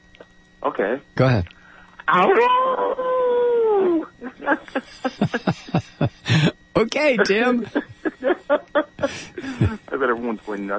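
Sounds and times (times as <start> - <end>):
speech: 0.6 - 3.2, 3.8 - 10.7
person imitating coyote howl and yips: 2.1 - 4.1
laughter: 3.6 - 6.6, 7.5 - 9.9.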